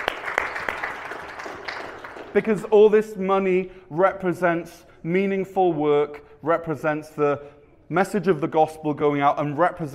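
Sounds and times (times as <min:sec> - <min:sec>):
audience applause: 0:00.0 - 0:02.4
speech: 0:02.3 - 0:09.9.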